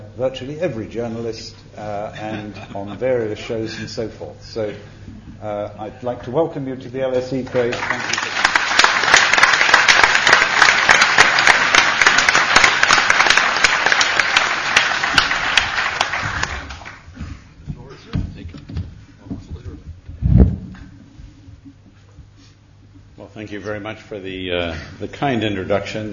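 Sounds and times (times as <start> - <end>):
speech: 0.2 - 8.3, 23.5 - 26.1
audience applause welcoming a speaker at the LSE: 7.5 - 17.1
low thud: 20.1 - 20.9.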